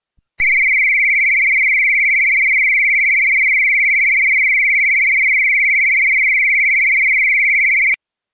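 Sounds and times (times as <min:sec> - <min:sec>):
whistle: 0:00.4 - 0:08.0.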